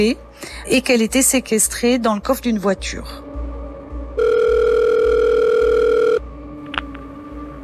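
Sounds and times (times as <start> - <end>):
speech: 0.0 - 3.2
telephone ringing tone: 4.2 - 7.1.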